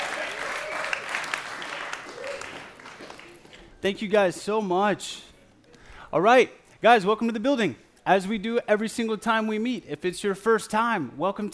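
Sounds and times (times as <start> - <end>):
faint cheers: 0.0 - 2.8
audience applause: 0.0 - 3.5
speech: 3.8 - 5.3, 6.1 - 11.5.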